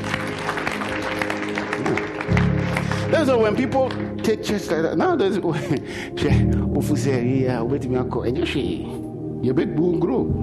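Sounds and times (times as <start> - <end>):
audience clapping hands: 0.0 - 5.4
speech: 3.2 - 10.4.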